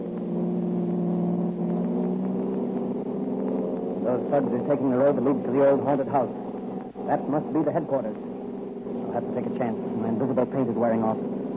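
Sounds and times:
car engine during chase on the river road: 0.0 - 11.5
speech: 4.1 - 6.4, 7.1 - 8.3, 9.2 - 11.3.

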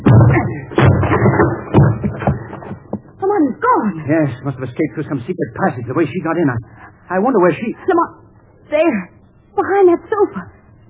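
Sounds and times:
heavy thuds of a door being broken down: 0.0 - 3.2
speech: 4.1 - 10.5.

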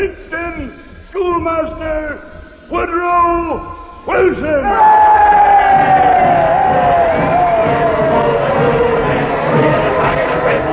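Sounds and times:
speech: 1.4 - 5.2
convention crowd cheering and shouting: 4.1 - 10.7.

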